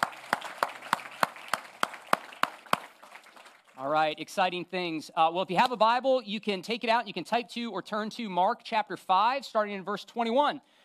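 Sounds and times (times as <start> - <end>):
round of applause: 0.0 - 4.1
speech: 3.8 - 10.7.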